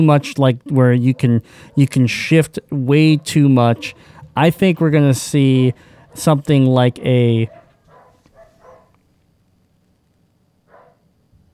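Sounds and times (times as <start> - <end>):
speech: 0.0 - 7.6
low hiss: 0.0 - 11.5
dogs barking faintly: 0.2 - 6.5, 7.4 - 9.0, 10.7 - 11.0.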